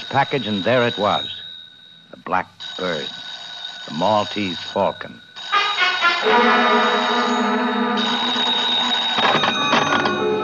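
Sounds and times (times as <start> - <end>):
telephone ringing: 0.0 - 10.4
speech: 0.1 - 1.4, 2.2 - 3.2, 3.9 - 5.3, 6.2 - 7.5.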